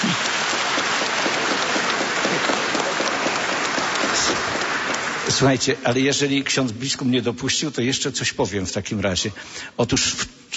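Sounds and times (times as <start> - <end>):
audience applause: 0.0 - 6.2
speech: 5.4 - 10.5.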